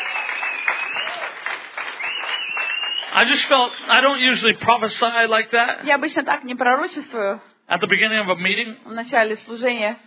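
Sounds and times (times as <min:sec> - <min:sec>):
audience clapping: 0:00.0 - 0:04.2
speech: 0:03.2 - 0:10.0.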